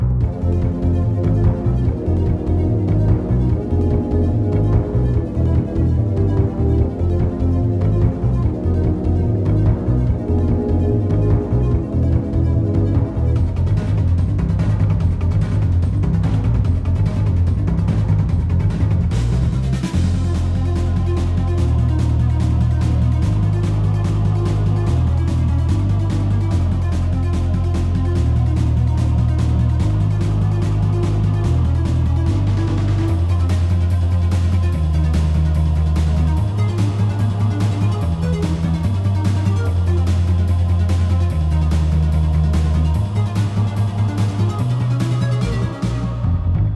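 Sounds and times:
game boss music: 0.2 - 18.3, 19.1 - 46.5.

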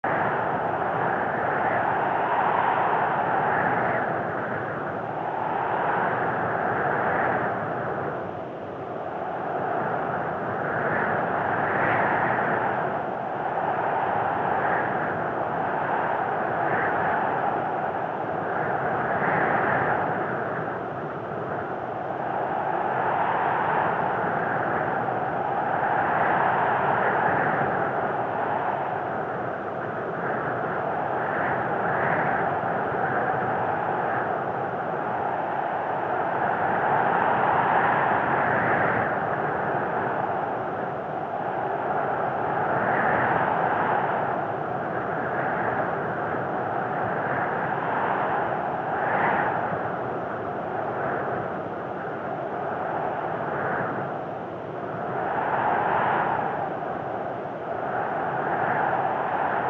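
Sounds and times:
high altitude wind breeze: 0.0 - 59.6.

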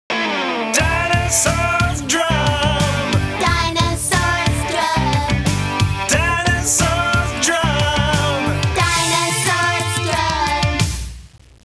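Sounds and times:
song spelling letters: 0.8 - 10.8.

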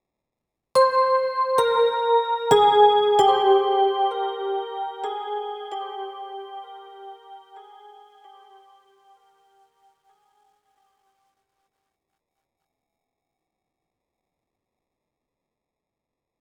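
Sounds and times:
Rhodes electric piano one-shot: 0.8 - 7.9.

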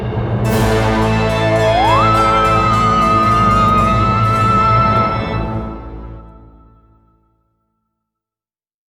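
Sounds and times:
menu music: 0.5 - 7.2.

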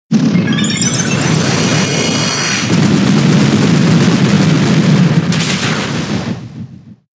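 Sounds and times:
explosion: 0.1 - 7.1.

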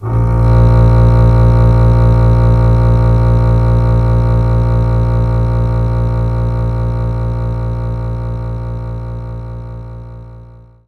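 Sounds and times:
double bass A sharp note: 0.0 - 10.8.

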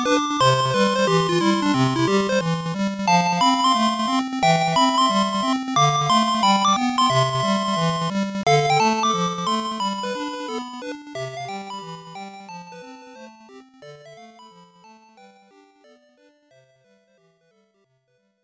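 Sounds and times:
minigame background music: 0.0 - 11.5.

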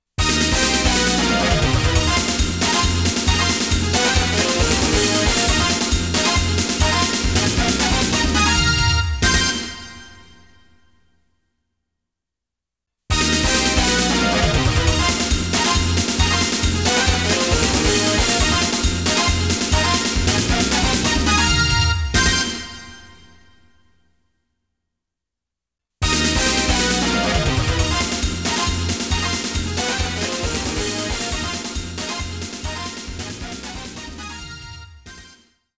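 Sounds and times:
MIDI music: 0.3 - 9.6, 13.2 - 22.4, 26.1 - 35.0.

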